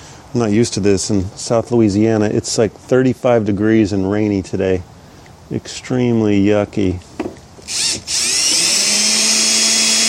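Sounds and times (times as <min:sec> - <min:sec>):
speech: 0:00.3 - 0:07.1, 0:07.7 - 0:08.3
power drill driving a screw: 0:07.6 - 0:10.0.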